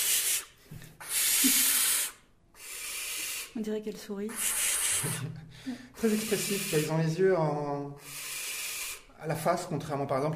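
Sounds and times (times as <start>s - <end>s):
young owl giving breathy hissing calls: 0.0s - 5.3s, 6.0s - 7.1s, 8.0s - 9.2s
speech: 1.4s - 1.6s, 3.6s - 8.1s, 9.2s - 10.3s.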